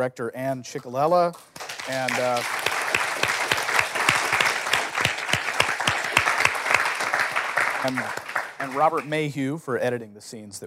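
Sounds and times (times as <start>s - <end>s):
speech: 0.0s - 2.8s, 7.8s - 10.6s
audience applause for actors at a Cato Institute event: 1.3s - 9.4s.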